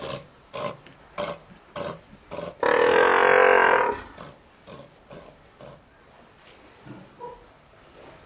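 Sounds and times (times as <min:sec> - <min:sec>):
Northern fur seal long harmonic bleat: 0:02.6 - 0:04.1.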